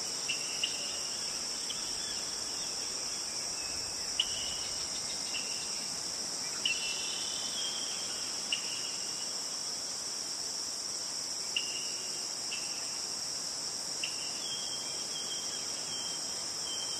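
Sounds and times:
insects droning: 0.0 - 16.9
soft constant hiss: 0.0 - 16.9.

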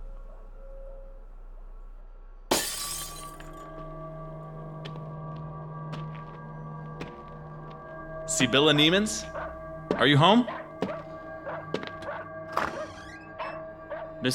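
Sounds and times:
falling glass shards tinkling: 2.5 - 3.6
kitchen window glass shattering: 2.5 - 3.6
speech: 8.3 - 9.3, 10.0 - 10.6.

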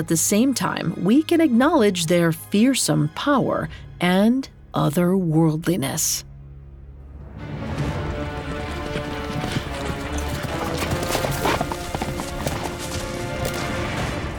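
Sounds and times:
speech: 0.0 - 6.3
galloping hooves of a centaur: 7.4 - 14.3.

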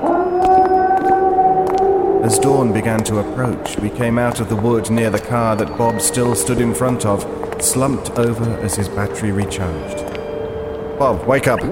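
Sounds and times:
mutated creature crying out in the night: 0.0 - 5.1
speech: 2.2 - 10.2, 11.0 - 11.6.

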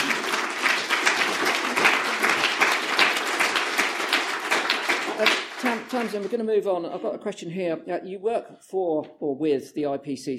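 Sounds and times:
applause: 0.0 - 6.5
speech: 5.9 - 10.3.

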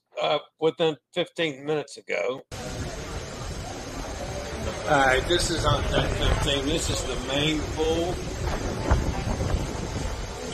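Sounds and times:
speech: 0.2 - 2.7, 4.7 - 9.0
heavy rain on an open ship deck: 2.5 - 10.5
tremendous wind on an open ship deck: 2.5 - 10.5.

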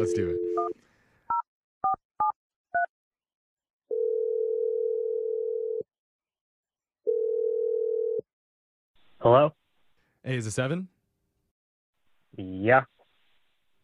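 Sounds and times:
touch-tone dialing on a telephone: 0.0 - 0.7
long steady telephone tones: 0.0 - 0.8, 3.9 - 5.8, 7.1 - 8.2
speech: 0.0 - 0.9, 9.2 - 9.6, 10.2 - 11.0, 12.4 - 12.9.

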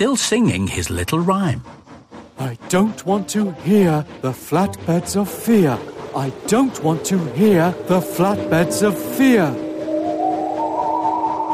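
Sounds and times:
speech: 0.0 - 1.8, 2.4 - 9.6
whistling sound effect: 6.3 - 11.5.

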